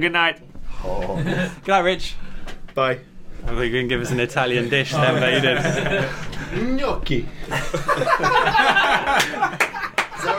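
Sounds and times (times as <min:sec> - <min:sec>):
speech: 0:00.0 - 0:09.5
laughter: 0:01.0 - 0:01.6, 0:04.9 - 0:06.7, 0:07.4 - 0:10.3
one person clapping hands: 0:09.1 - 0:10.2.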